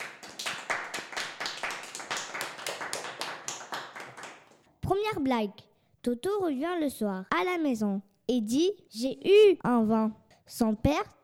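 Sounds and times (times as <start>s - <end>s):
audience applauding: 0.0s - 4.6s
speech: 5.1s - 11.2s.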